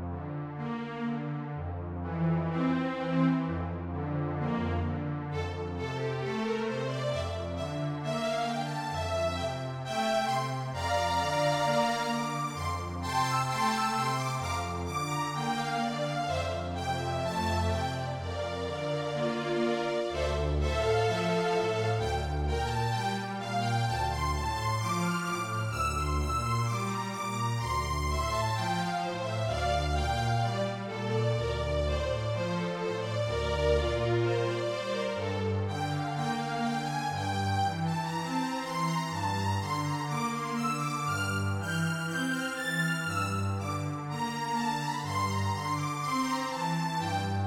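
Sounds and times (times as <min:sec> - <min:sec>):
strings: 0:00.1 - 0:47.4.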